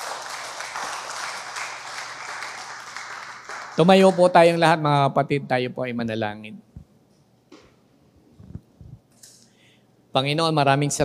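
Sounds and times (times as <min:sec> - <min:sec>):
church congregation applauding: 0:00.0 - 0:04.6
speech: 0:03.8 - 0:06.7, 0:10.1 - 0:11.0.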